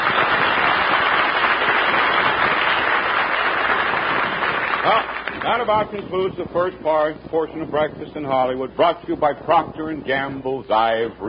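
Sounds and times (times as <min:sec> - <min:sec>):
studio audience cheering and applauding: 0:00.0 - 0:05.5
speech: 0:04.8 - 0:11.2.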